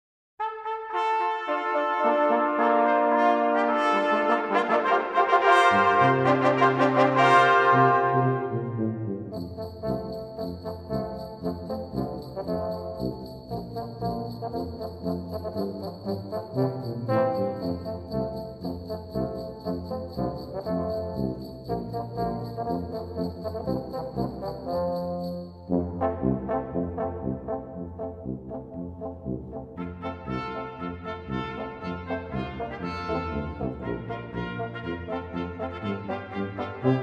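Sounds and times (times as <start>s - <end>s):
brass playing: 0.4s - 37.0s.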